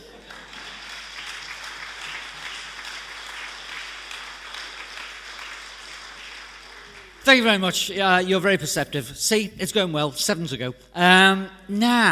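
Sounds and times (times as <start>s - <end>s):
audience clapping: 0.0s - 7.9s
speech: 7.3s - 12.1s.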